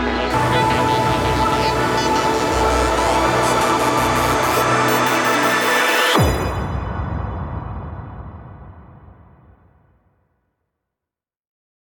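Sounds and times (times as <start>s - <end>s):
intro jingle: 0.1s - 9.5s.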